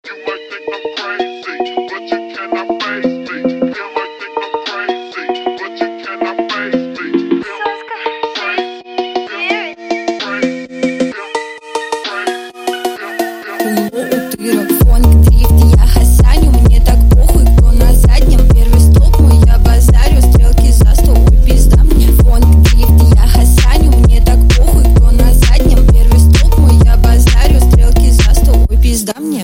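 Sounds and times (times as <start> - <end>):
drift phonk music: 0.0 - 29.4.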